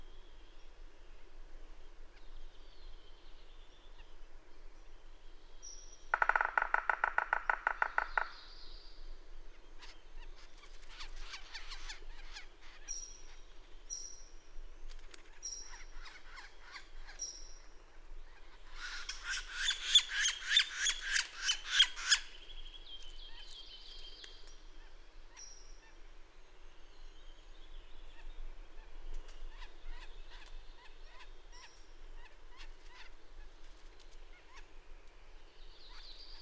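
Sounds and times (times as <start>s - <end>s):
bird song: 0.0s - 36.4s.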